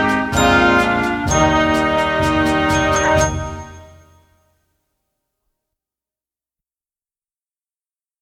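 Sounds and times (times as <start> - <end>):
English folk music: 0.0 - 4.3.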